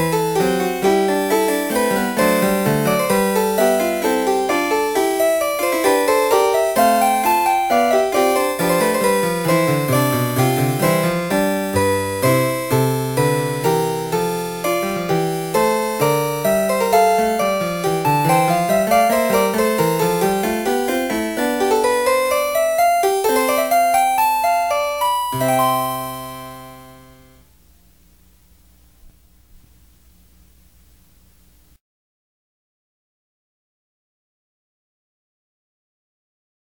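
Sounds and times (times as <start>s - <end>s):
keyboard fugue in C: 0.0s - 27.5s.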